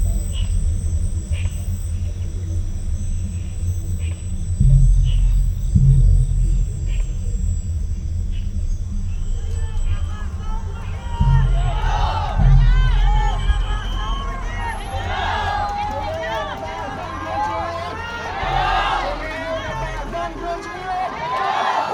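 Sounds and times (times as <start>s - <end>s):
heavy thumps: 0.0s - 21.1s
faint thin whine: 0.0s - 21.2s
steady low engine rumble in a Phnom Penh street: 0.0s - 21.2s
dense crowd of overlapping voices: 5.2s - 21.9s.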